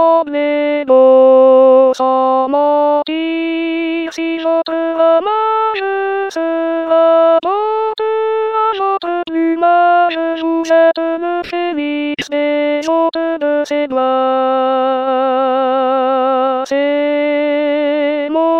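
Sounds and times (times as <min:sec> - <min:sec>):
alto voice singing a chorale: 0:00.0 - 0:18.5.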